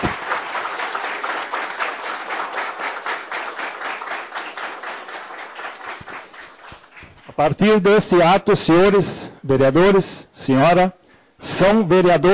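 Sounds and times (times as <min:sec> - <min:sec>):
applause from a group: 0:00.0 - 0:08.1
speech: 0:07.4 - 0:12.3.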